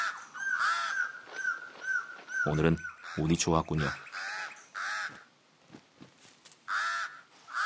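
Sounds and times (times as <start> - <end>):
pied crow giving harsh nasal caws: 0.0 - 3.3, 4.1 - 5.3, 6.6 - 7.6
speech: 2.4 - 4.1.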